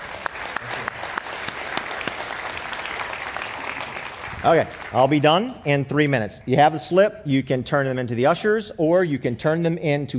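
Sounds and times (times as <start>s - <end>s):
audience applause: 0.0s - 5.5s
speech: 4.4s - 10.1s.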